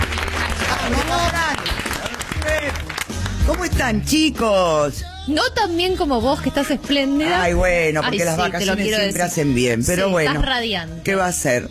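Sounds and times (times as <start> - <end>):
audience applause: 0.0 - 3.7
speech: 3.6 - 11.6.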